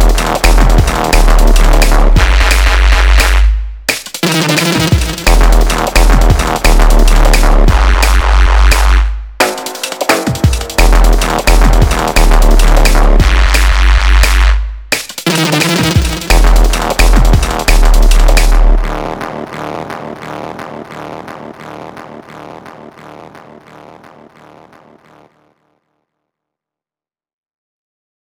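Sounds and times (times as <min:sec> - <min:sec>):
new-school drum and bass drum loop: 0:00.0 - 0:21.7.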